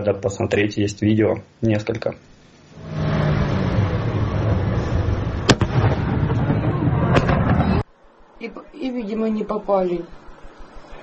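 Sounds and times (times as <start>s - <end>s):
speech: 0.0s - 2.4s, 8.4s - 10.2s
sharp cracking blasts: 2.7s - 7.8s
prolonged roaring rumble of ongoing detonations: 2.7s - 7.9s.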